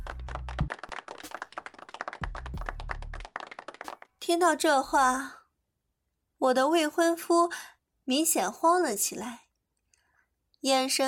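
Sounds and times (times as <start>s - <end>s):
audience applause: 0.0s - 4.1s
speech: 4.3s - 5.4s, 6.4s - 9.4s, 10.6s - 11.0s.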